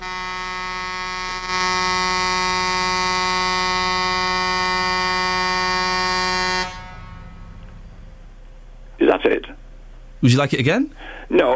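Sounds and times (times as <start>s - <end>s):
buzzy horn-like fanfare note: 0.0s - 8.4s
speech: 9.2s - 9.6s, 10.2s - 11.5s.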